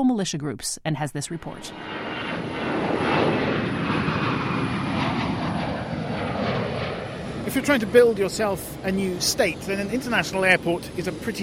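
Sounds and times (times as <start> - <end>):
speech: 0.0 - 2.1, 7.5 - 11.4
aircraft engines roaring on the tarmac at Tripoli International Airport: 1.5 - 11.4.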